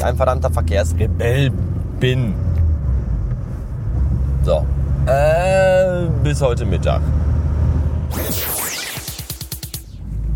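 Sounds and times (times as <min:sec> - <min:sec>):
speech: 0:00.0 - 0:02.5, 0:04.4 - 0:07.3, 0:08.1 - 0:08.7
car engine while overtaking: 0:00.0 - 0:08.1.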